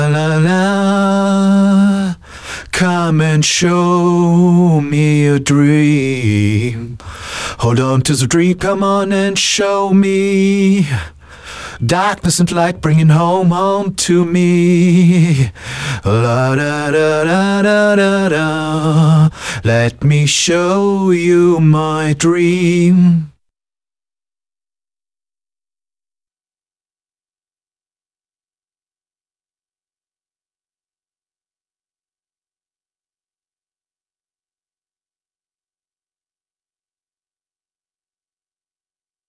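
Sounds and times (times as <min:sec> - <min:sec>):
vocal mix music: 0:00.0 - 0:23.3.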